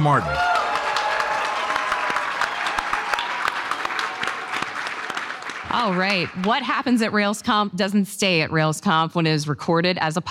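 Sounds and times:
speech: 0.0s - 0.5s, 5.7s - 10.2s
audience applause at the RailsConf 2023 live podcast recording: 0.3s - 6.8s.

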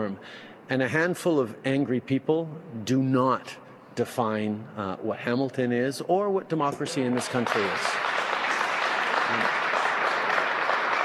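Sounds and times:
speech: 0.0s - 8.0s, 9.3s - 9.6s
audience clapping: 6.9s - 11.0s.

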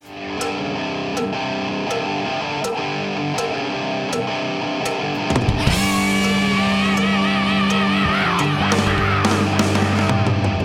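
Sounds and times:
distorted rock guitar riff: 0.0s - 10.6s
cowbell beat: 0.3s - 8.1s
sustained vocal scream with wavering pitch: 5.5s - 10.4s.

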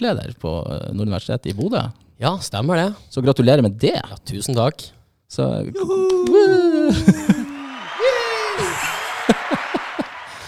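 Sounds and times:
speech: 0.0s - 7.5s
sliding whooping vocal cheers: 5.7s - 10.4s
laughter: 5.8s - 10.4s
hand clapping: 6.1s - 10.4s.

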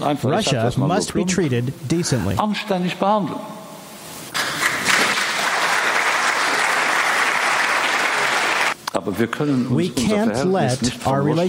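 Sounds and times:
speech: 0.0s - 3.6s, 9.0s - 11.4s
crowd applause: 4.4s - 8.8s.

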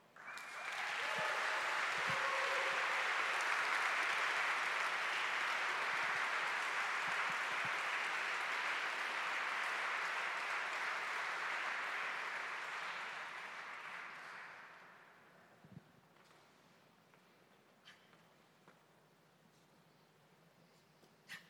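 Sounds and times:
audience applause welcoming a guest onto the stage: 0.2s - 15.2s.

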